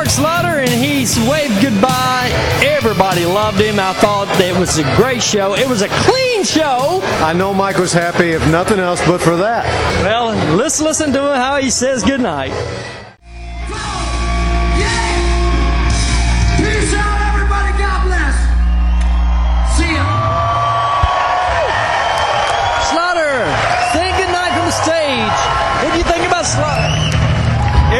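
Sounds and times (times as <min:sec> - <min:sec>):
loud crowd roaring and cheering: 0:00.0 - 0:11.6, 0:12.3 - 0:27.9
speech: 0:00.1 - 0:13.0.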